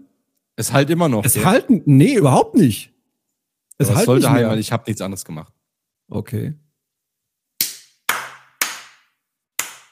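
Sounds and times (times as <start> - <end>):
speech: 0.6 - 2.9, 3.8 - 6.6
single person clapping hands: 7.6 - 9.9.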